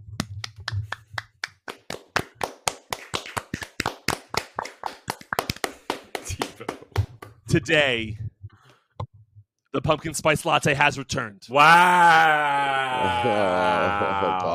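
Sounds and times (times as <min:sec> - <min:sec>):
small group of hosts clapping hands: 0:00.2 - 0:07.4
speech: 0:06.6 - 0:06.8, 0:07.5 - 0:08.2, 0:09.8 - 0:14.5
laughter: 0:12.8 - 0:14.5.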